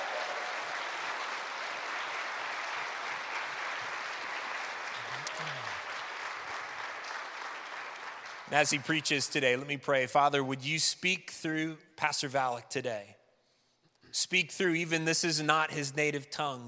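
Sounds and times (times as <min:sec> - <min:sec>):
audience applause welcoming a pastor at a church service: 0:00.0 - 0:09.2
speech: 0:08.5 - 0:13.2, 0:14.1 - 0:16.6.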